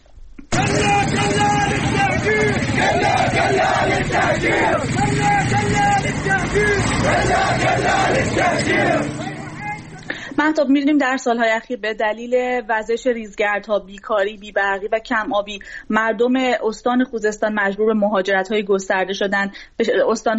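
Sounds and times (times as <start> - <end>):
local residents chanting protest slogans in Darkhovin: 0.6 - 10.1
speech: 10.4 - 20.3.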